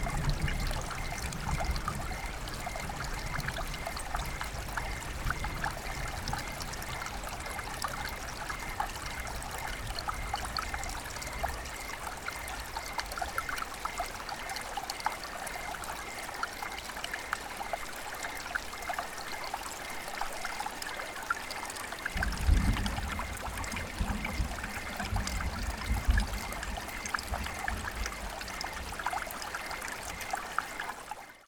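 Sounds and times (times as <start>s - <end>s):
relaxing rain: 0.0s - 31.4s
thunder: 22.2s - 28.8s.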